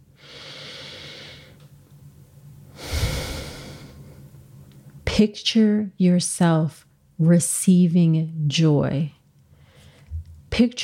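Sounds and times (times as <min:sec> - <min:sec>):
person taking a slow deep breath: 0:00.2 - 0:01.6, 0:02.7 - 0:04.2
speech: 0:05.2 - 0:09.2, 0:10.6 - 0:10.8.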